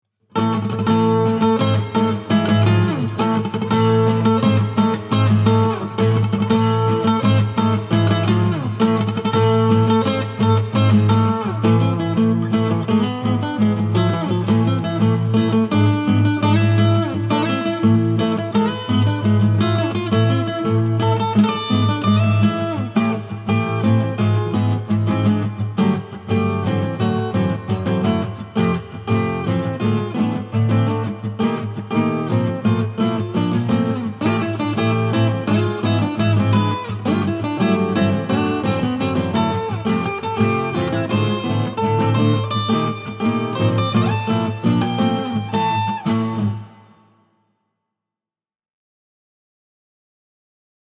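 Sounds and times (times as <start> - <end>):
acoustic music: 0.4 - 47.1.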